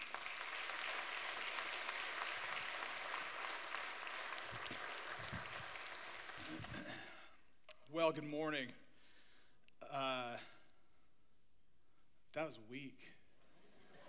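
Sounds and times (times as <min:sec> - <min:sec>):
church congregation applauding to welcome a guest speaker at a Sunday morning service: 0:00.0 - 0:07.2
speech: 0:07.9 - 0:08.8, 0:09.9 - 0:10.5, 0:12.4 - 0:13.2.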